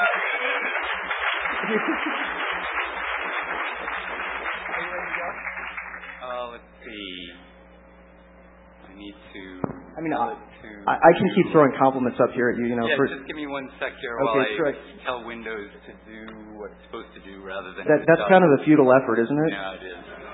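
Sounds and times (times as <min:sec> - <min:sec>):
laughter: 0:00.0 - 0:03.1, 0:10.9 - 0:11.8, 0:19.5 - 0:20.3
audience applause: 0:00.0 - 0:06.5
speech: 0:01.7 - 0:02.3, 0:10.0 - 0:20.2.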